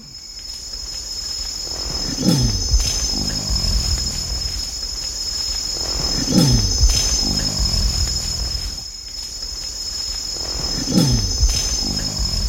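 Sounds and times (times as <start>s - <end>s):
insects chirring: 0.0s - 12.4s
male animal growling: 2.0s - 4.7s, 5.8s - 8.8s, 10.8s - 12.4s.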